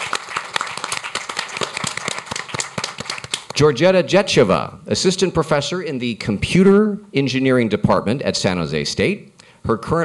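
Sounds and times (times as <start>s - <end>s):
audience applause: 0.0s - 3.6s
speech: 3.6s - 10.0s.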